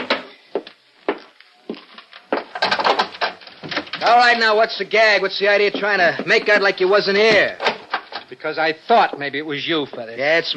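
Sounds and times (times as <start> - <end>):
wooden door being busted down: 2.4 - 4.4, 7.2 - 8.3
speech: 4.0 - 7.6, 8.4 - 10.5.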